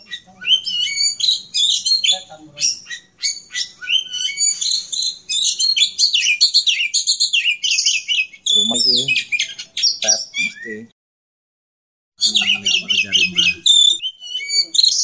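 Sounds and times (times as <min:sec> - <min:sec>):
magpie robin chirping: 0:00.0 - 0:10.9, 0:12.2 - 0:15.0.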